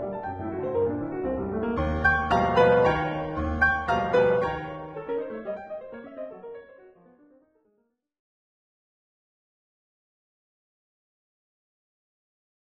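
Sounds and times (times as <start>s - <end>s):
piano sonata third movement: 0.0s - 7.2s.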